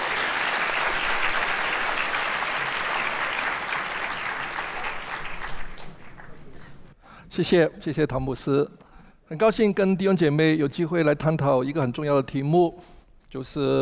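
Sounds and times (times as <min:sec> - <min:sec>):
crowd applauding: 0:00.0 - 0:06.9
speech: 0:07.4 - 0:13.8.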